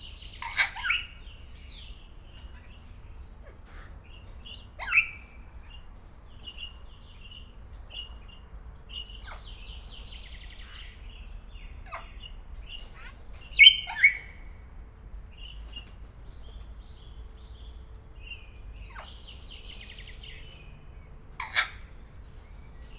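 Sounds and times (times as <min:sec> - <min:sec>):
low background hum: 0:00.0 - 0:22.9
small birds chirping: 0:00.0 - 0:22.9
grey parrot squawking: 0:00.4 - 0:01.2, 0:21.4 - 0:21.8.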